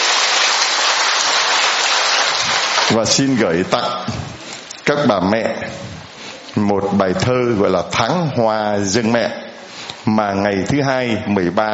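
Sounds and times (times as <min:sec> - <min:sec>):
audience applause: 0:00.0 - 0:03.4
speech: 0:02.9 - 0:04.2, 0:04.9 - 0:05.9, 0:06.6 - 0:09.4, 0:10.0 - 0:11.7.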